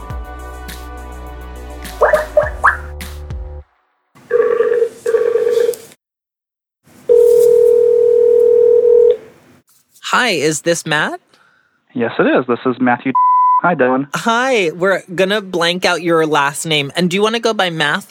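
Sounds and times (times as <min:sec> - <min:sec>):
telephone dialing: 0:04.3 - 0:05.8, 0:07.1 - 0:09.2
speech: 0:10.3 - 0:11.2, 0:12.0 - 0:18.1.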